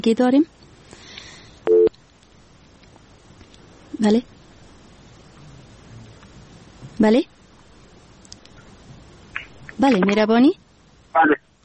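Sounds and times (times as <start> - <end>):
speech: 0.0 - 0.6, 4.0 - 4.4, 7.0 - 7.3, 9.8 - 11.4
faint noise: 0.0 - 11.6
telephone busy tone on a phone-in line after a dropped call: 1.7 - 1.9.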